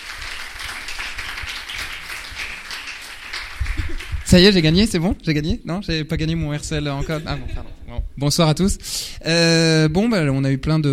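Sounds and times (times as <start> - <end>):
audience applauding: 0.0 - 4.7
speech: 4.3 - 10.9.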